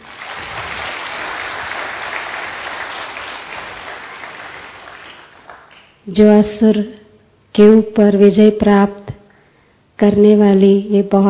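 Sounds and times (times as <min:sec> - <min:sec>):
loud crowd clapping: 0:00.0 - 0:06.0
speech: 0:06.1 - 0:07.0, 0:07.6 - 0:09.0, 0:10.0 - 0:11.2.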